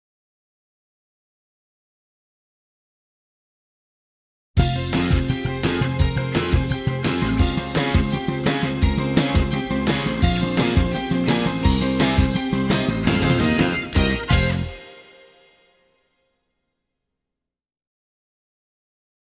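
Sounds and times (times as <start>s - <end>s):
instrumental fanfare: 4.6s - 15.7s.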